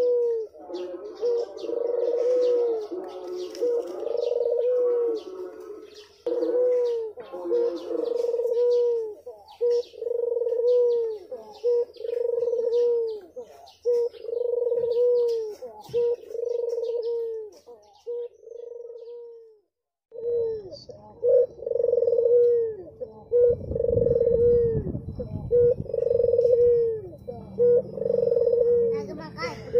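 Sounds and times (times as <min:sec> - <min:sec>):
Barbary dove cooing: 0:00.0 - 0:29.7
other birds chirping: 0:00.0 - 0:29.7
low rumbling background: 0:22.7 - 0:28.6.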